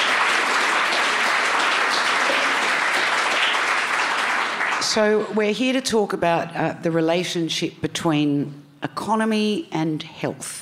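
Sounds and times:
audience clapping to welcome a guest speaker: 0.0 - 5.4
speech: 5.0 - 10.5.

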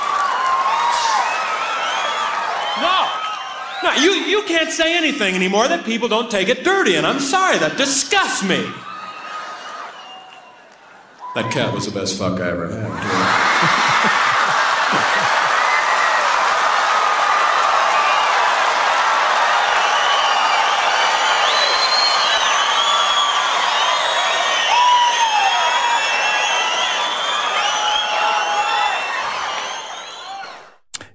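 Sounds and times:
large crowd cheering and shouting: 0.0 - 4.9, 6.9 - 11.5, 12.9 - 30.7
whistles: 0.8 - 4.2, 8.8 - 11.9, 19.6 - 30.7
speech: 3.8 - 8.9, 11.4 - 14.2
laughter: 12.8 - 16.0.

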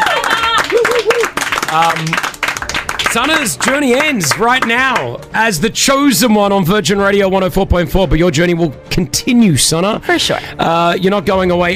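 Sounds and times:
audience applause: 0.0 - 5.4
speech: 1.7 - 2.3, 3.1 - 11.7.

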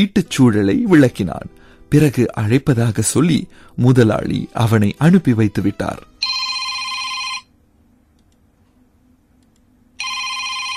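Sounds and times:
speech: 0.0 - 6.4
telephone ringing in a security guard room: 6.2 - 7.6, 10.0 - 10.7.

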